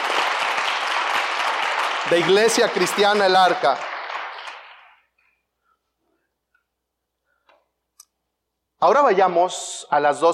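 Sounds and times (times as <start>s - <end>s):
audience applause: 0.0s - 5.1s
speech: 2.0s - 3.9s, 8.8s - 10.3s.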